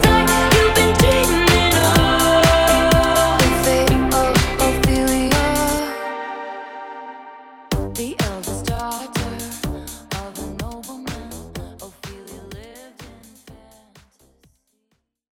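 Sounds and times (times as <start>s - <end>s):
drum beat at 125 BPM: 0.0s - 5.8s, 7.7s - 14.1s.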